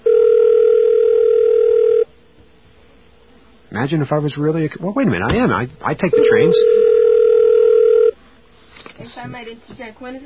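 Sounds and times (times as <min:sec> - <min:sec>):
telephone line tone during call: 0:00.0 - 0:02.1, 0:06.1 - 0:08.2
speech: 0:03.8 - 0:06.9, 0:09.2 - 0:10.2.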